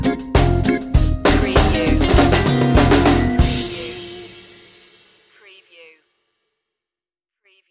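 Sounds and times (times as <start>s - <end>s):
reggae stinger: 0.1s - 4.8s.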